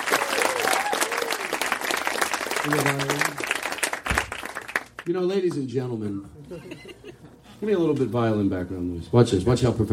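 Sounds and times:
audience applause at a live comedy show: 0:00.0 - 0:05.1
speech: 0:02.6 - 0:03.4, 0:05.0 - 0:09.9
laughter: 0:06.4 - 0:07.5.

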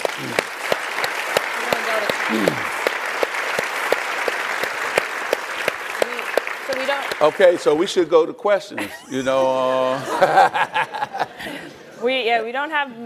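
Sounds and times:
audience applause: 0:00.0 - 0:08.1
speech: 0:00.2 - 0:00.5, 0:02.3 - 0:02.7, 0:07.2 - 0:13.0
laughter: 0:08.8 - 0:11.8.

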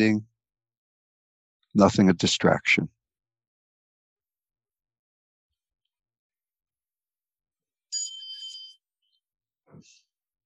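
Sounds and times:
speech: 0:00.0 - 0:00.3, 0:01.8 - 0:03.0
meditation bell ringing: 0:07.9 - 0:08.8.

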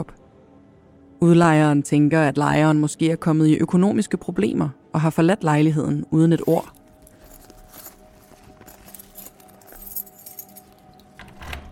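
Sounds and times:
speech: 0:01.2 - 0:06.8
metallic keys jangling while unlocking a door: 0:06.5 - 0:11.6
lock being worked: 0:10.5 - 0:11.7.

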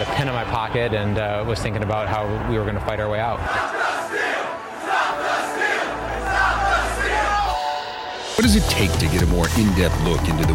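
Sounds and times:
speech: 0:00.0 - 0:04.2, 0:08.4 - 0:10.5
rioting crowd storming the Capitol: 0:00.0 - 0:08.1.

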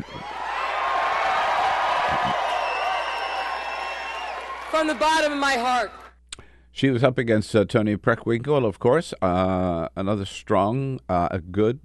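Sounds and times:
crowd cheering at a victory party: 0:00.0 - 0:06.1
high whistles: 0:02.0 - 0:04.8
speech: 0:04.7 - 0:06.0, 0:06.8 - 0:11.8.

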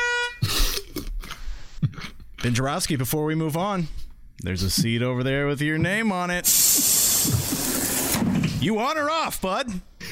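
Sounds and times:
bus horn honking: 0:00.0 - 0:00.5
speech: 0:02.4 - 0:06.6, 0:08.6 - 0:09.9
loud rough bursts of noise: 0:06.4 - 0:08.6.

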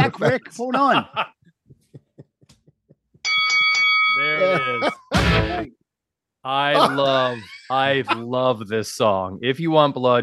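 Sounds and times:
laughter: 0:00.0 - 0:02.9, 0:04.2 - 0:05.7, 0:06.6 - 0:08.4
speech: 0:00.1 - 0:01.4, 0:04.2 - 0:05.8, 0:06.4 - 0:10.2
bell ringing: 0:03.2 - 0:05.1.

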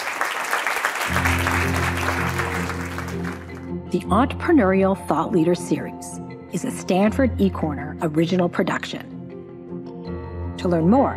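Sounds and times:
crowd applause: 0:00.0 - 0:03.7
sustained musical tone: 0:01.1 - 0:03.7
speech: 0:03.9 - 0:09.1, 0:10.6 - 0:11.1.

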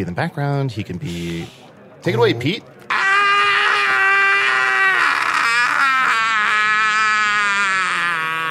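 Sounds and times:
speech: 0:00.0 - 0:02.8
toy figure electronic scream: 0:02.9 - 0:08.4.

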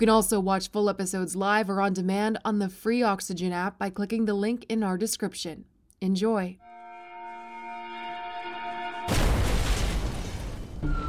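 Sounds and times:
speech: 0:00.0 - 0:06.6
bomb explosion: 0:09.1 - 0:11.0.

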